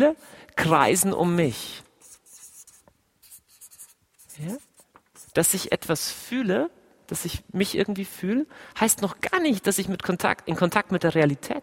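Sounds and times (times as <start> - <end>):
speech: 0.0 - 1.8, 4.4 - 4.7, 5.3 - 11.6
pen writing on paper by hand: 2.0 - 5.3.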